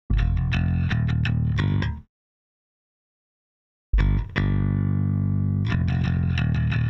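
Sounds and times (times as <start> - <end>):
bass: 0.1 - 2.1, 4.0 - 6.8.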